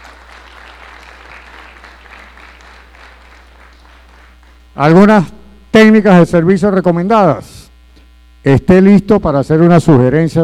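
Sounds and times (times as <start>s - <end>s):
audience applause at a spirits industry congress: 0.0s - 4.6s
faint low hum: 0.0s - 10.4s
speech: 4.8s - 7.5s, 8.4s - 10.4s.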